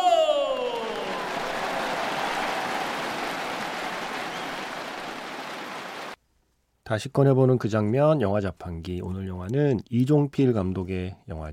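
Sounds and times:
audience applause: 0.3 - 6.2
speech: 6.9 - 11.5.

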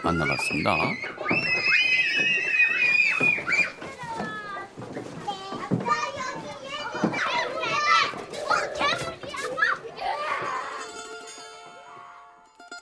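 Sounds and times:
speech: 0.0 - 1.8
children playing loudly at a playground: 0.0 - 12.4.

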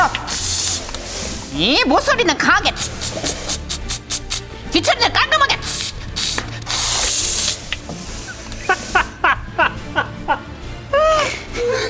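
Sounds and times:
voice imitating steam iron hisses: 0.0 - 1.6, 2.7 - 4.5, 5.6 - 9.2
speech: 1.6 - 3.6, 4.8 - 5.4
laughter: 8.2 - 11.8.

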